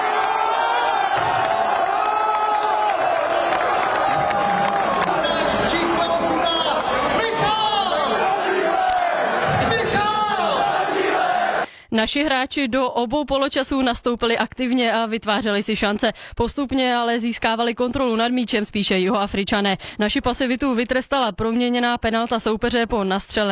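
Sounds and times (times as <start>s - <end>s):
large crowd of football fans cheering after a goal: 0.0s - 11.7s
speech: 12.0s - 23.5s.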